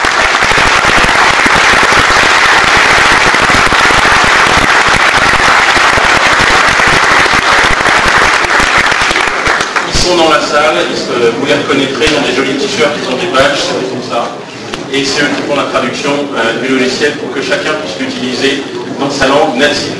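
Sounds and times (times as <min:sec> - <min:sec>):
crowd clapping: 0:00.0 - 0:10.4
speech: 0:10.3 - 0:19.9.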